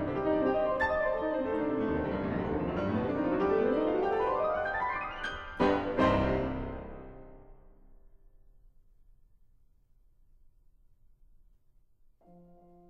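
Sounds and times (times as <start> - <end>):
two pianos playing a fantasy: 0.0 - 7.6.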